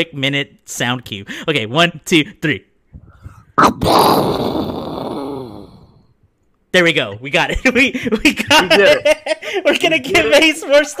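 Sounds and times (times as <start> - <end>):
speech: 0.0 - 2.7, 6.8 - 10.9
person imitating an explosion with their voice: 3.1 - 6.1
laughter: 7.5 - 10.9.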